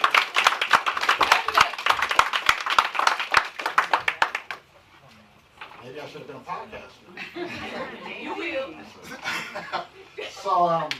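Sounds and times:
audience clapping: 0.0 - 4.7
speech: 6.0 - 10.9
laughter: 7.1 - 10.6.

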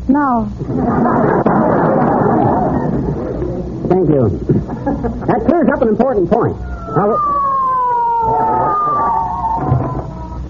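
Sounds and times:
speech: 0.1 - 3.1, 3.9 - 7.4
laughter: 0.6 - 5.5
police squad car siren wailing: 6.6 - 10.4.

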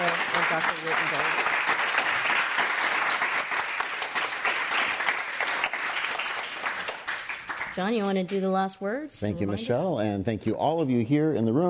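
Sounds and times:
audience applause: 0.0 - 8.0
speech: 0.6 - 1.5, 7.8 - 11.6.

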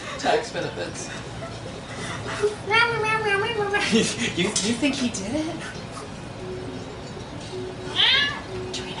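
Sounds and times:
speech: 0.3 - 2.9, 3.9 - 5.8
pet cat Luna meowing: 7.9 - 8.5.

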